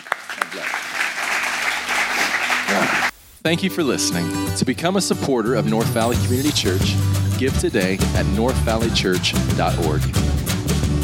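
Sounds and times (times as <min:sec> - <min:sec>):
audience applauding: 0:00.0 - 0:03.1
speech: 0:02.7 - 0:10.3.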